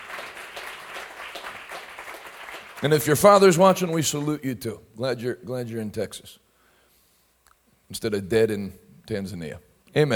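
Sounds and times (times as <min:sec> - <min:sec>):
crowd hand clapping: 0:00.0 - 0:04.4
speech: 0:02.8 - 0:06.4, 0:07.9 - 0:10.1.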